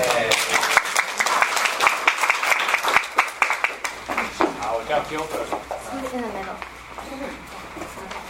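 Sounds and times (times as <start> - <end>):
audience clapping: 0.0 - 5.3
speech: 5.1 - 7.5.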